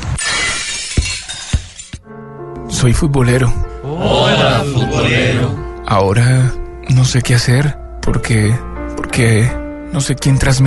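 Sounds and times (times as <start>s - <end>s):
glass vase shattering after being struck by a football: 0.0s - 2.0s
glass pieces striking down with heavy impacts: 0.1s - 2.0s
speech: 2.8s - 10.6s.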